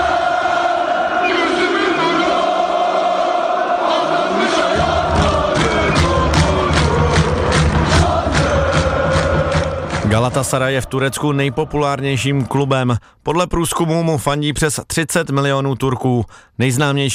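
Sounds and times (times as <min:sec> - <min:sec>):
football fans chanting in stadium: 0:00.0 - 0:12.6
rhythmic claps or drum hits: 0:04.6 - 0:11.3
speech: 0:10.2 - 0:17.1.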